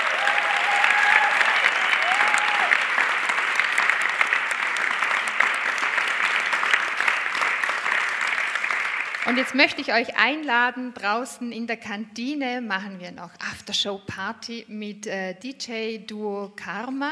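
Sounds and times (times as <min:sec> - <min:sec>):
audience applause: 0:00.0 - 0:09.8
speech: 0:09.3 - 0:17.1.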